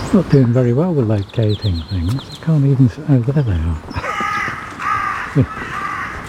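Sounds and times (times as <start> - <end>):
speech: 0.1 - 4.0, 5.3 - 5.7
carrion crow cawing: 4.0 - 6.2.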